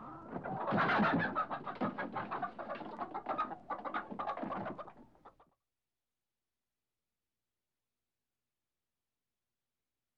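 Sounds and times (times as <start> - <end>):
hens in a hen house: 0.0 - 5.4.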